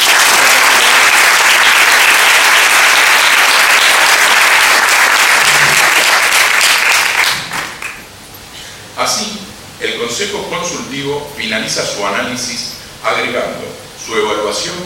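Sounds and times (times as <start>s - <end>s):
audience applause: 0.0s - 8.0s
speech: 10.2s - 14.8s.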